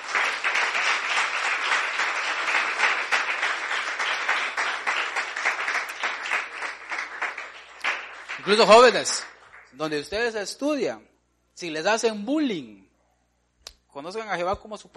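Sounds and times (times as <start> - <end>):
congregation applauding during a church service: 0.0 - 10.0
speech: 8.4 - 12.9, 14.0 - 14.9.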